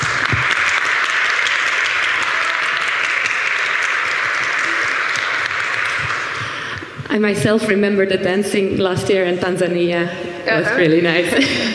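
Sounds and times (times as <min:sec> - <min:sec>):
crowd applause for a speaker: 0:00.0 - 0:07.1
speech: 0:07.2 - 0:11.7
laughter: 0:11.2 - 0:11.7.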